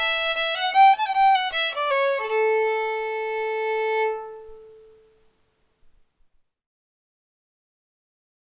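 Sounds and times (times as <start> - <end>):
fiddle: 0.0 - 5.2.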